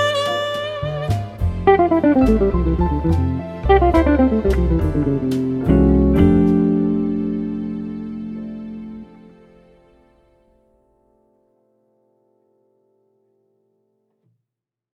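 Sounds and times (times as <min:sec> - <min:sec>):
relaxing piano music on radio: 0:00.0 - 0:13.6.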